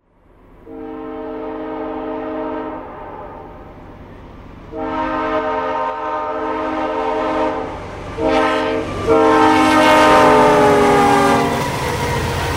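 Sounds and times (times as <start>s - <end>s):
horns: 0.6s - 3.6s, 4.7s - 12.4s.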